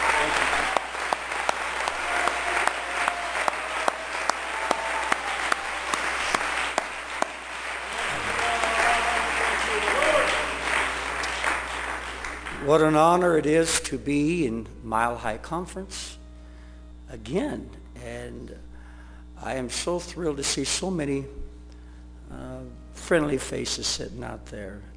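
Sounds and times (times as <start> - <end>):
audience hand clapping in praise: 0.0 - 13.2
speech: 12.7 - 16.2, 17.1 - 18.7, 19.4 - 21.4, 23.1 - 24.9.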